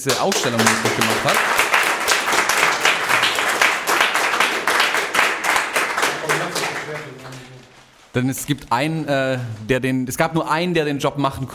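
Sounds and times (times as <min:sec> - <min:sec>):
speech: 0:00.0 - 0:01.6, 0:08.2 - 0:11.5
audience applause: 0:00.0 - 0:08.1.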